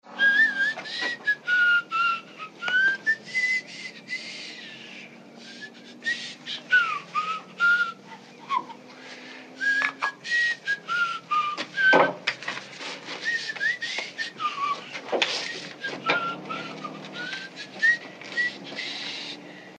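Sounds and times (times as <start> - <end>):
person whistling: 0.1 - 8.9, 9.5 - 12.3, 13.1 - 19.4.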